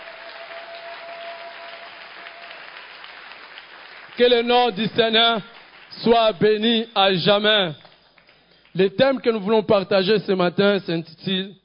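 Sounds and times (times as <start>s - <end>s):
audience applause: 0.0s - 6.1s
speech: 4.2s - 7.8s, 8.8s - 11.6s.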